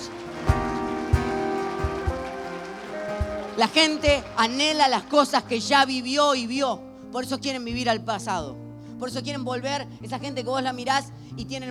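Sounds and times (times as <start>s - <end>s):
audience applauding: 0.0s - 6.6s
speech: 3.6s - 11.6s.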